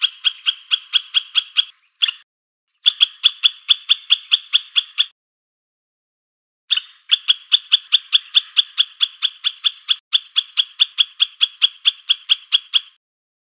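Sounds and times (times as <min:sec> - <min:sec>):
squirrel barking: 0:00.0 - 0:02.2, 0:02.8 - 0:05.1, 0:06.7 - 0:13.0.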